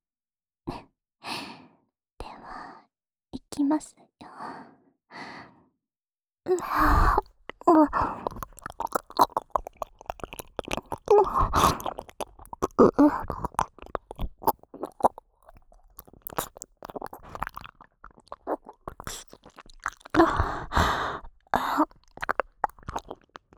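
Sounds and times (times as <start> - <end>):
ASMR ear licking in the right ear: 6.6 - 23.5.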